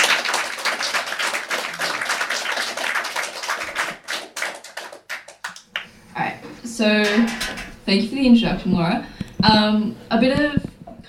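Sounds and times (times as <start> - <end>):
audience applause: 0.0 - 5.8
speech: 6.8 - 10.7.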